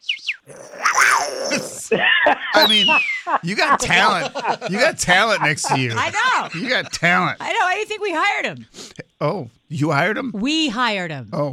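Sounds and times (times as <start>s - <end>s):
person imitating a jaguar with growling roar: 0.5s - 1.9s
laughter: 1.5s - 7.6s
speech: 1.9s - 11.5s
high-pitched chirping sounds: 2.6s - 3.3s.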